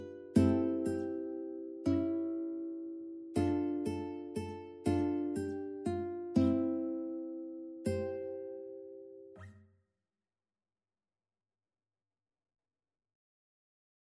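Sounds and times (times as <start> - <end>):
ukulele: 0.0 - 9.3.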